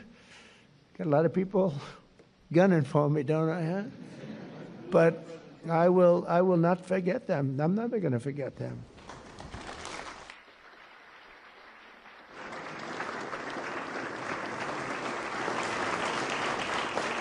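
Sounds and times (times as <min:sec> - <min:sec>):
speech: 0:01.0 - 0:04.2, 0:04.9 - 0:08.9
applause: 0:09.0 - 0:17.1.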